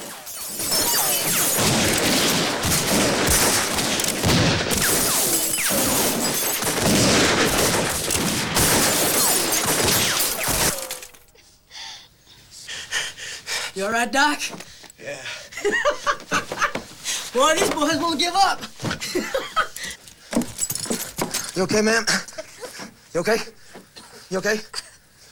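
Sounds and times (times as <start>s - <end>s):
gunmen firing a barrage of gunfire at a house: 0.0s - 11.1s
crashing impacts: 0.0s - 11.3s
glass shattering: 0.0s - 11.3s, 20.4s - 21.6s
speech: 13.8s - 16.4s, 17.3s - 18.7s, 21.6s - 22.3s, 23.2s - 23.6s, 24.3s - 24.8s
laughter: 15.4s - 16.9s, 18.9s - 19.9s.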